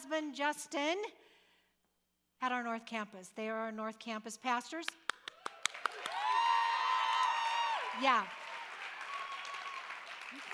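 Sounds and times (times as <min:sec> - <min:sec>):
speech: 0:00.1 - 0:01.3, 0:02.4 - 0:05.0, 0:08.0 - 0:08.4
audience applause: 0:05.3 - 0:10.5
faint whoops of cheering: 0:05.5 - 0:10.5.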